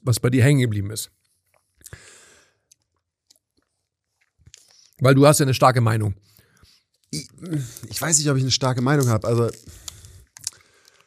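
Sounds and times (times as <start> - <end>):
speech: 0.0 - 1.2, 5.0 - 6.3, 7.1 - 9.9
chewing while eating: 2.7 - 5.0, 9.5 - 11.0
crunchy bite: 9.6 - 11.0.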